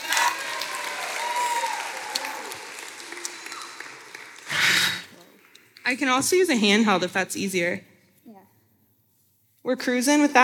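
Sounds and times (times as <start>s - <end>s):
audience applause: 0.0s - 5.6s
speech: 5.9s - 7.9s, 9.7s - 10.4s.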